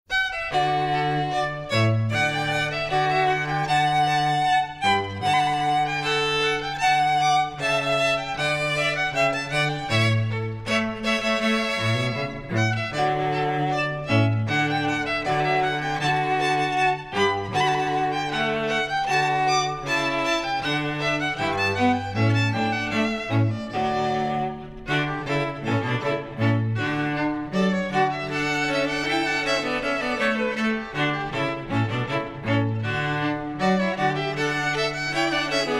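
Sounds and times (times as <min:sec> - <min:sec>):
trio playing a rondeau: 0:00.1 - 0:35.7.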